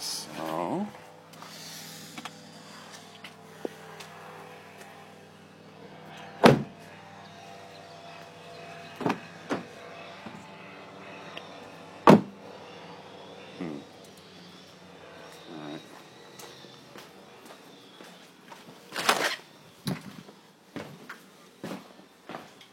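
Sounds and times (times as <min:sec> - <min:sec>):
faint hum: 0:00.0 - 0:22.7
car doors thudding while unloading things from a car: 0:06.4 - 0:06.7, 0:12.1 - 0:12.3.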